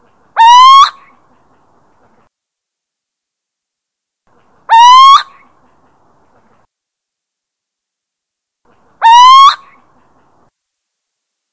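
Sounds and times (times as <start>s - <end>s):
little owl territorial hooting: 0.4s - 1.1s, 4.7s - 5.4s, 9.0s - 9.8s.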